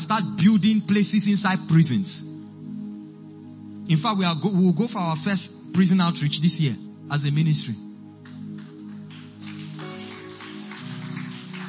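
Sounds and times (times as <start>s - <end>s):
speech: 0.0s - 2.4s, 3.9s - 7.9s
low sustained musical tone: 0.0s - 11.6s
crowd clapping: 8.2s - 11.6s.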